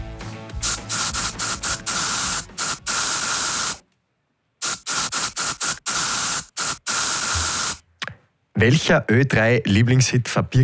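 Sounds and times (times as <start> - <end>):
aerosol spray hissing from a deodorant can: 0.6 - 3.8, 4.6 - 7.8
speech: 8.6 - 10.6.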